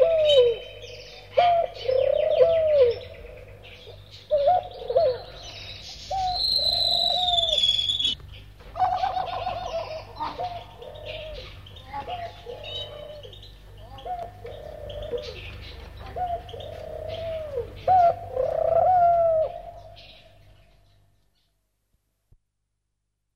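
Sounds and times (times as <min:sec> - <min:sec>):
turtle dove calling: 0:00.0 - 0:20.8.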